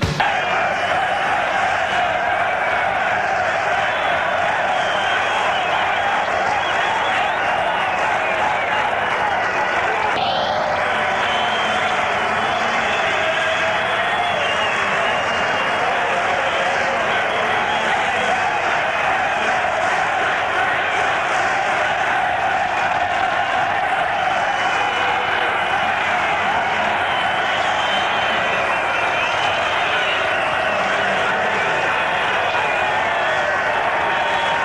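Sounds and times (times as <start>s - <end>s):
football crowd roaring in the stands of Bologna's Renato Dall'Ara stadium: 0.2s - 34.6s.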